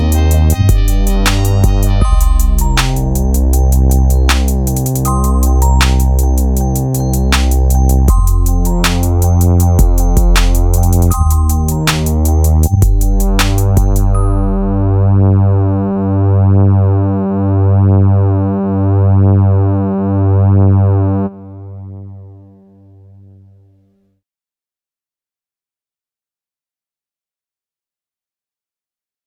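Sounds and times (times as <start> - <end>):
Casio CZ-101 synthesizer: 0.0 - 23.0.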